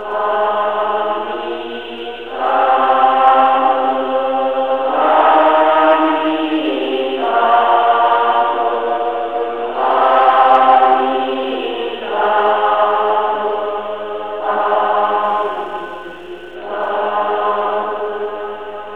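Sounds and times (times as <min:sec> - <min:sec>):
Buddhist chanting: 0:00.0 - 0:18.9.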